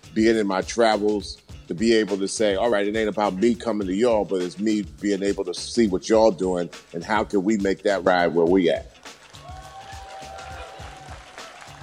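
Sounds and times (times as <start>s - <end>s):
speech: 0.1s - 8.9s
audience applause: 9.3s - 11.8s.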